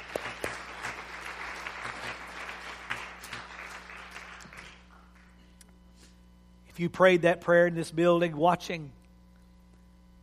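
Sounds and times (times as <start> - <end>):
people clapping hands: 0.0 - 5.5
speech: 6.8 - 9.0.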